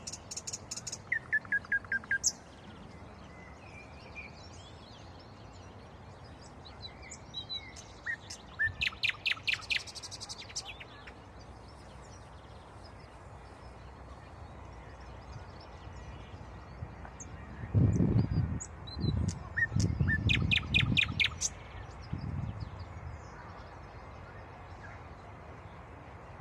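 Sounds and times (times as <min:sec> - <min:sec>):
common nightingale singing: 0:00.0 - 0:13.1, 0:17.9 - 0:22.4.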